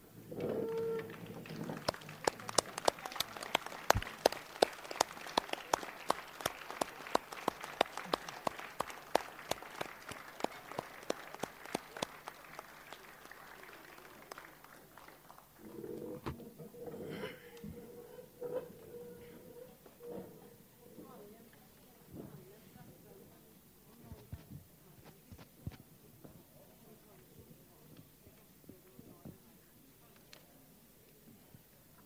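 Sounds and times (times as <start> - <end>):
low murmur of room noise: 0.0 - 32.0
audience applauding: 0.6 - 15.8.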